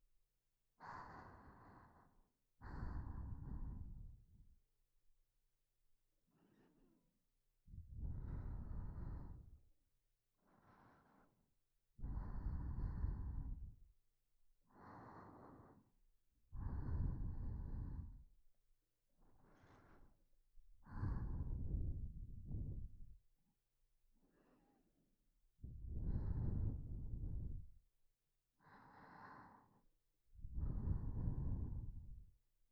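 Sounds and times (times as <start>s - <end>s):
person breathing in sleep: 0.8s - 4.5s, 6.3s - 7.1s, 7.7s - 9.6s, 10.3s - 13.9s, 14.6s - 18.3s, 19.2s - 20.2s, 20.8s - 23.2s, 24.2s - 24.9s, 25.6s - 27.8s, 28.6s - 32.3s.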